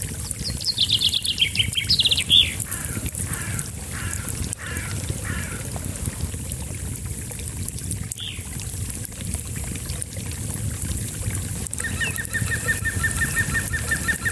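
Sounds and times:
small brook trickling: 0.0 - 14.3
birds singing: 0.4 - 5.6, 8.2 - 8.5, 11.8 - 14.3.

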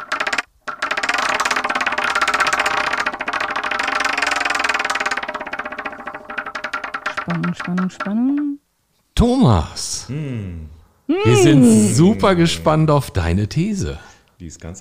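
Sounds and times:
spinning prize wheel rattling: 0.0 - 8.6
speech: 7.3 - 8.6, 9.2 - 14.7.

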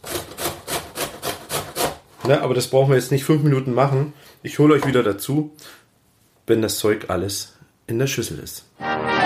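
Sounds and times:
grating by hand into a plastic storage container: 0.0 - 2.1
speech: 2.3 - 5.8, 6.5 - 9.1.

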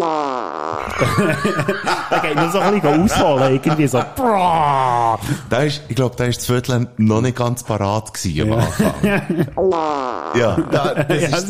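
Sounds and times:
tonal buzzy fart: 0.0 - 0.9, 9.6 - 10.8
loud bursting laughter: 0.8 - 5.4, 8.6 - 9.6, 10.4 - 11.4
speech: 1.0 - 11.4.

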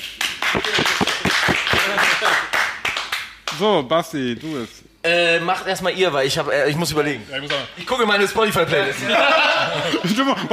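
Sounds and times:
audience clapping: 0.0 - 3.6
laughter: 0.7 - 2.5, 8.8 - 10.5
speech: 3.6 - 10.5.

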